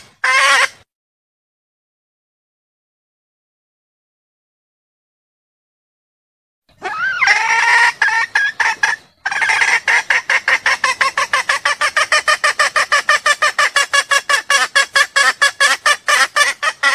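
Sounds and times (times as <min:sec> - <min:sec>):
junglefowl clucking: 0:00.0 - 0:00.8, 0:06.8 - 0:16.9.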